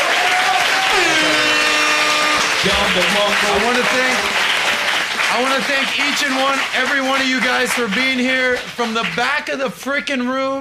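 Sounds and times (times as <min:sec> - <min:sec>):
audience round of applause: 0:00.0 - 0:09.7
speech: 0:02.6 - 0:04.5, 0:05.3 - 0:10.5.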